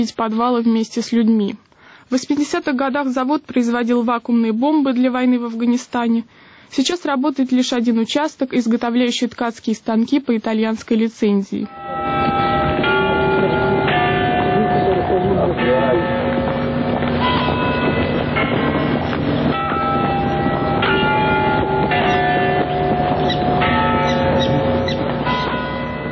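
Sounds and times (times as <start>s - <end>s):
speech: 0.0s - 12.0s
Nevyansk leaning tower clock chiming bells: 11.7s - 26.1s.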